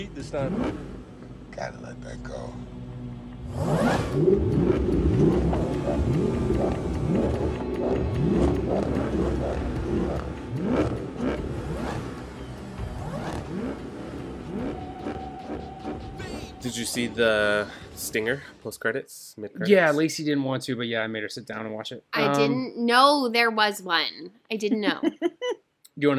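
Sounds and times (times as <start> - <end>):
speech: 0.0 - 1.0, 1.6 - 2.8, 3.5 - 10.8, 16.6 - 25.3, 26.0 - 26.1
car engines revving in a quarter-mile street race in Fast Five: 0.0 - 18.6.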